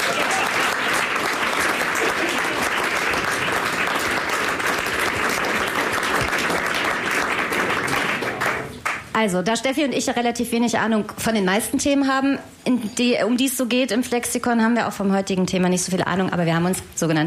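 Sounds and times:
audience applause: 0.0s - 9.1s
speech: 9.2s - 17.2s.

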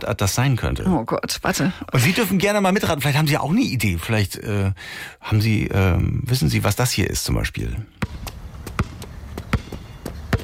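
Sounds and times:
speech: 0.0s - 8.4s
basketball bouncing during a 3x3 basketball game: 8.0s - 10.4s.

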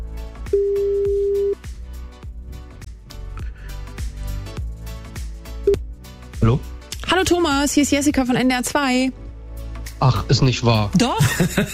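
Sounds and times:
telephone ringing somewhere in Niedersachsen: 0.5s - 1.6s
speech: 7.3s - 9.2s, 10.0s - 11.7s
laughter: 11.0s - 11.7s.

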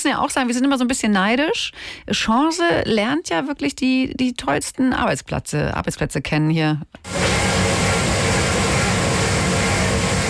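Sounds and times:
speech: 0.0s - 7.5s
dishwasher running in a cheese dairy: 7.1s - 10.2s.

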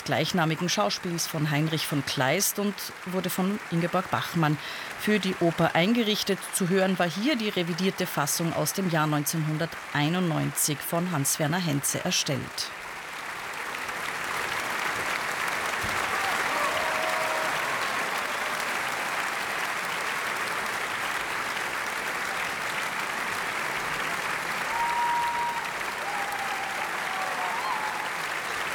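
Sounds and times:
speech: 0.0s - 12.8s
audience applause after an opera performance: 0.0s - 28.7s
audience shouts: 15.8s - 19.3s, 24.6s - 28.7s.

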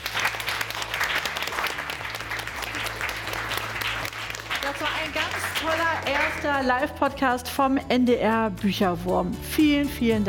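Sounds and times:
children clapping for themselves: 0.0s - 6.6s
speech: 4.8s - 10.2s.

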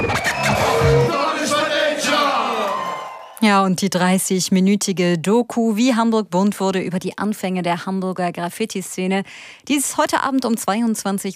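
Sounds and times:
crowd applause: 0.0s - 3.4s
speech: 3.4s - 11.3s.

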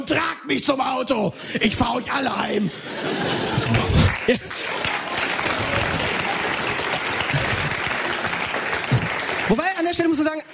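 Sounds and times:
speech: 0.0s - 4.8s, 9.5s - 10.5s
laughter: 1.6s - 8.2s
audience applause: 3.0s - 10.5s.

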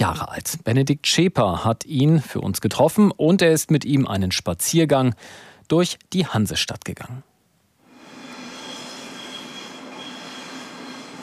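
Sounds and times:
speech: 0.1s - 7.3s
trains rattling over rails in a station: 8.2s - 11.2s.

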